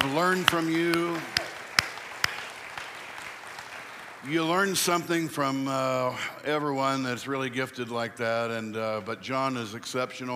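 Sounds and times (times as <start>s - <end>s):
audience applause: 0.0s - 5.2s
speech: 0.2s - 1.4s, 4.2s - 10.3s.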